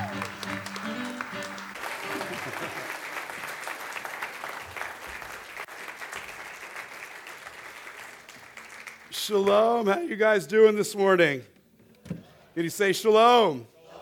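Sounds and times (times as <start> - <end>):
audience clapping to welcome a rabbi at a Bible teaching event: 0.0 - 9.9
speech: 9.3 - 11.5, 12.6 - 13.7.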